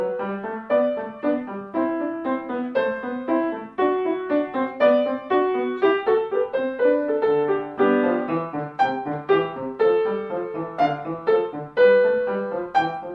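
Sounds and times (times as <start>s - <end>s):
gavotte music: 0.0s - 13.1s.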